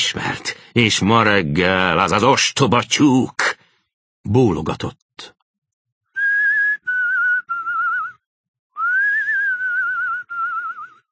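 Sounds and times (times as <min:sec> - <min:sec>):
speech: 0:00.1 - 0:03.5, 0:04.2 - 0:05.4
person whistling a nursery tune: 0:06.2 - 0:08.2, 0:08.8 - 0:11.1.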